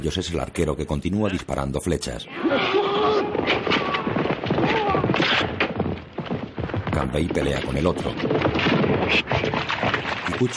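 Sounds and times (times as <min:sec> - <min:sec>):
speech: 0:00.0 - 0:02.8, 0:07.0 - 0:10.5
horses galloping: 0:02.4 - 0:10.5.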